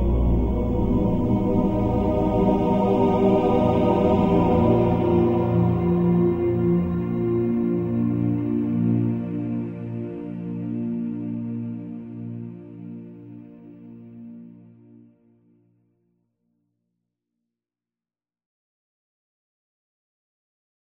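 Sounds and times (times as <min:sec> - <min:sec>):
male choir singing swells: 0:00.0 - 0:13.0.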